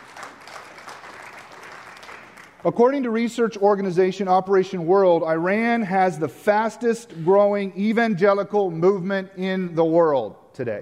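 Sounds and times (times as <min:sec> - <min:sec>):
audience applause: 0:00.0 - 0:02.6
speech: 0:02.6 - 0:10.8.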